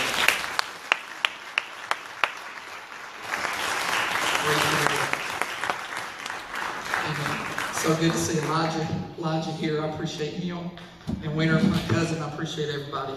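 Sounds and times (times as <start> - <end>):
audience hand clapping: 0.0 - 9.0
speech: 7.9 - 13.1.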